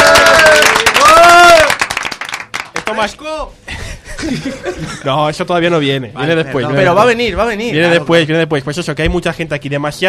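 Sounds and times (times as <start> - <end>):
loud applause from studio guests: 0.0 - 2.9
speech: 3.0 - 10.0
laughter: 3.7 - 5.1.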